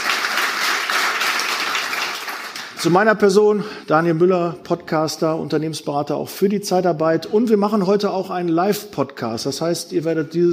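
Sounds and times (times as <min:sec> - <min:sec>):
audience applause at a live recruiting-industry event: 0:00.0 - 0:02.9
speech: 0:02.8 - 0:10.5.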